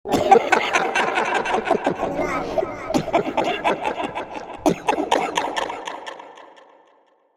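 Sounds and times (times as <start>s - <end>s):
evil maniacal cheesy villain laughter: 0.1s - 7.2s.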